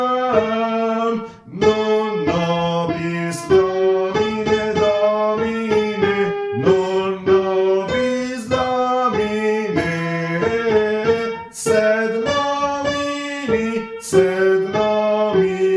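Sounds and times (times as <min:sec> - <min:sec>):
first tenors singing: 0:00.0 - 0:15.7.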